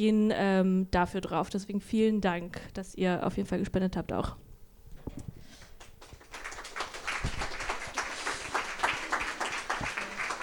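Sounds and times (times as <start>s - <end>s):
speech: 0.0s - 4.5s
audience applause: 5.8s - 10.4s.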